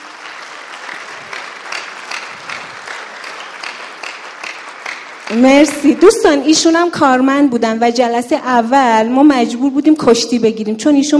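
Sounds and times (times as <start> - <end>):
audience applause: 0.0 - 7.0
speech: 5.3 - 11.1.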